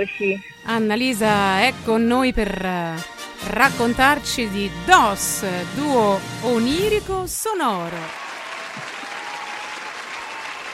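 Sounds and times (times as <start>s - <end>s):
speech: 0.0s - 8.2s
applause: 7.9s - 10.7s.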